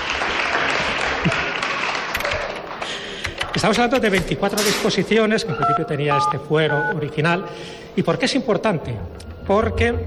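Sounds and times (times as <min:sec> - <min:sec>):
applause: 0:00.0 - 0:03.2
speech: 0:03.6 - 0:10.0.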